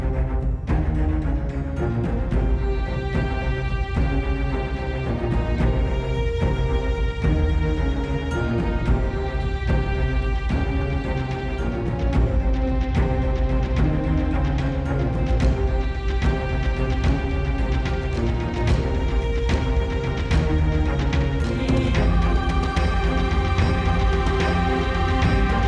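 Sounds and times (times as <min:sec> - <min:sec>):
fight music: 0:00.0 - 0:25.6.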